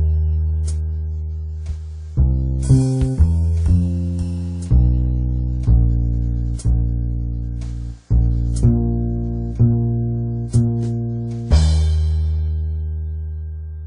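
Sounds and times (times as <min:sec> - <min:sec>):
jazz backing music: 0:00.0 - 0:13.0.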